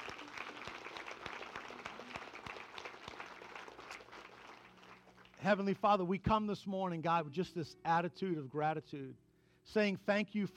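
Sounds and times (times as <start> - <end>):
audience clapping: 0.0 - 5.7
speech: 5.4 - 10.5.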